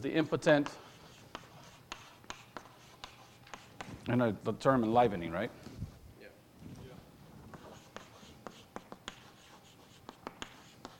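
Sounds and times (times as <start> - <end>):
speech: 0.0 - 0.9, 4.0 - 5.7
pen strokes and taps of handwriting: 0.6 - 4.0, 7.5 - 10.9.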